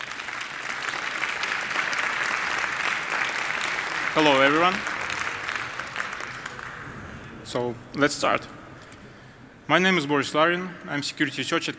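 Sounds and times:
audience applause: 0:00.0 - 0:07.1
speech: 0:04.2 - 0:04.9, 0:07.5 - 0:08.6, 0:09.7 - 0:11.7.

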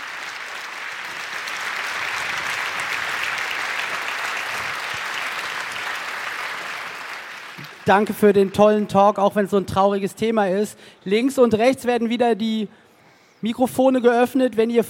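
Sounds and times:
audience applause: 0:00.0 - 0:08.8
speech: 0:07.9 - 0:12.8, 0:13.4 - 0:14.8.

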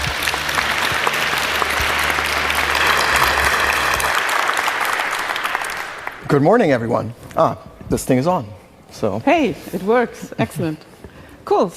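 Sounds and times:
audience clapping: 0:00.0 - 0:06.9
speech: 0:06.3 - 0:10.9, 0:11.5 - 0:11.7.

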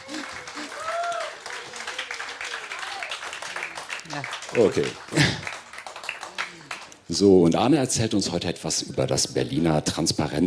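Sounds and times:
audience applause: 0:00.0 - 0:07.3
speech: 0:04.1 - 0:05.5, 0:07.2 - 0:10.4.

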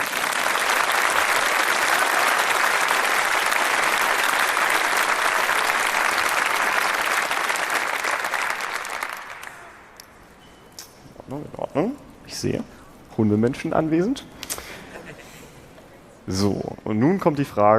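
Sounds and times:
audience applause: 0:00.0 - 0:10.0
speech: 0:12.4 - 0:14.4, 0:16.3 - 0:17.7.

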